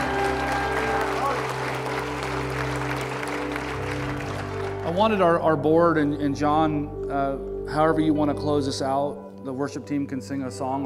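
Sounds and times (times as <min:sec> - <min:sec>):
audience applause: 0:00.0 - 0:05.0
speech: 0:04.9 - 0:10.8.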